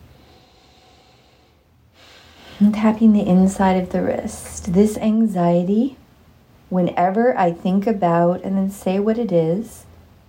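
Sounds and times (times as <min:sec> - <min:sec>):
deep breath during a relaxation tapping exercise: 0:00.0 - 0:02.6
speech: 0:02.6 - 0:06.0, 0:06.7 - 0:09.9.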